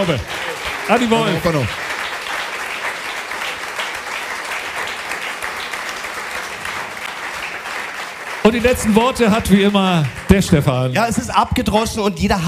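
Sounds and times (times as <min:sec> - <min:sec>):
speech: 0:00.0 - 0:00.3, 0:00.9 - 0:01.8, 0:08.4 - 0:12.4
audience applause: 0:00.0 - 0:11.2.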